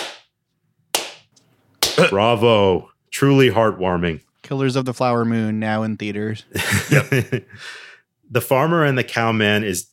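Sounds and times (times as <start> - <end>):
slow clap: 1.0 - 2.0
speech: 2.0 - 9.9
laughter: 6.6 - 7.6.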